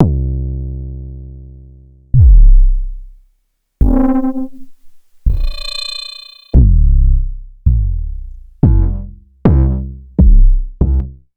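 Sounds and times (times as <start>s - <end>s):
kick drum in C: 2.2s - 3.1s, 3.8s - 5.8s, 6.6s - 11.1s.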